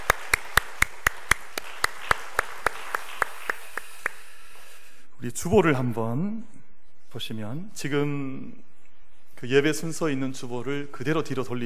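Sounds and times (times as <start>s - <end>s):
audience clapping: 0.0s - 4.8s
speech: 5.2s - 8.7s, 9.4s - 11.6s.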